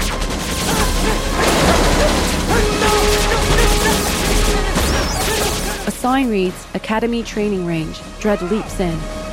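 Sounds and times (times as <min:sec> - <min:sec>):
mechanical crashes and rattles: 0:00.0 - 0:05.9
rapid gunfire from guards in an audio drama: 0:00.0 - 0:05.9
speech: 0:06.0 - 0:09.2.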